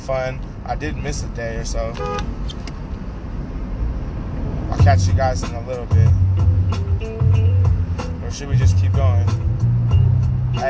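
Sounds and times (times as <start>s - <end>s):
car being driven: 0.0s - 10.6s
speech: 0.1s - 2.7s, 4.8s - 6.8s, 8.3s - 9.5s.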